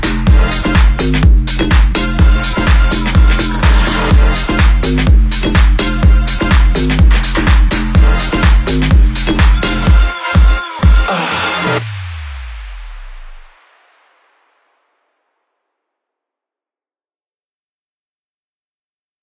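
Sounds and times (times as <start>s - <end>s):
adventure music: 0.1s - 12.5s.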